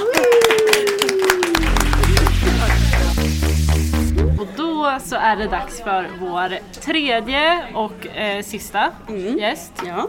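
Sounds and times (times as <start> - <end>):
applause for a guest: 0.0 - 4.0
speech: 5.0 - 10.0.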